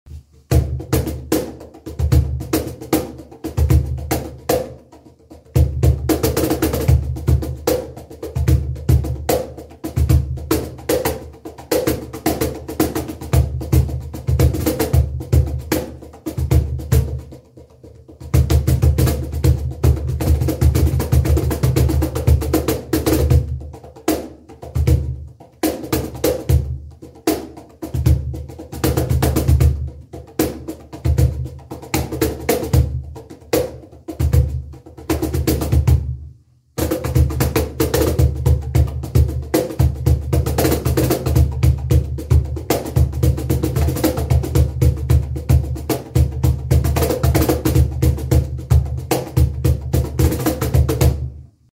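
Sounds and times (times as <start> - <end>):
cajon drumming: 0.2 - 36.2, 36.8 - 51.4.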